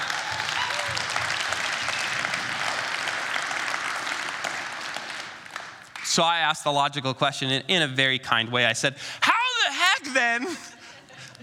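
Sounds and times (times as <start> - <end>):
audience applause: 0.0 - 6.1
speech: 6.2 - 9.4, 10.0 - 10.8.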